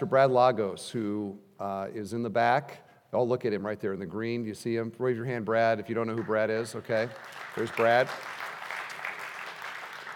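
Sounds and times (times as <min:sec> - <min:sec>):
speech: 0:00.0 - 0:08.4
audience clapping: 0:06.2 - 0:10.1.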